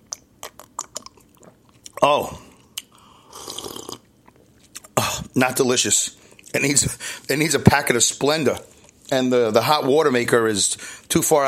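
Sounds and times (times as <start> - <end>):
sipping hot English tea: 0.1 - 4.6
speech: 2.0 - 2.5, 5.4 - 11.4.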